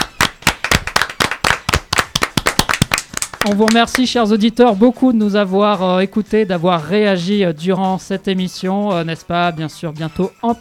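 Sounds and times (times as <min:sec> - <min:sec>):
audience applause for a performer: 0:00.0 - 0:03.6
speech: 0:03.4 - 0:10.6.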